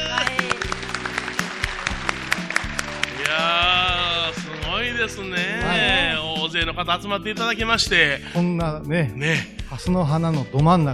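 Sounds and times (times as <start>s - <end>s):
large crowd applauding: 0.0s - 6.2s
speech: 6.5s - 10.9s.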